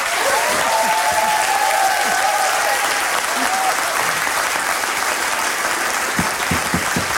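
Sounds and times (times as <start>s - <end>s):
audience clapping: 0.0s - 7.1s.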